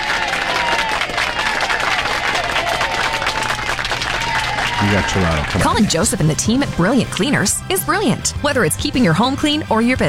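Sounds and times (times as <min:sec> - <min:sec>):
loud sustained crowd applause: 0:00.0 - 0:06.4
speech: 0:04.9 - 0:10.0.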